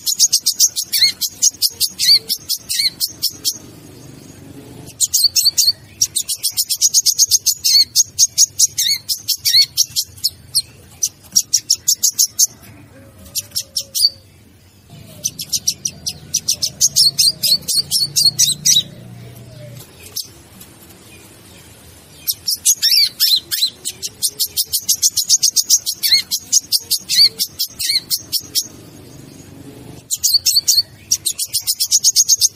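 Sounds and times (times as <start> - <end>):
bird chirping: 0.0 - 32.5.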